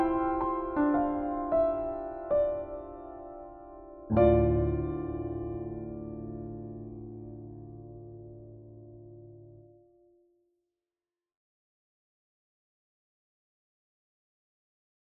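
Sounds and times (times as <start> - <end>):
combined pianos playing: 0.0 - 9.7.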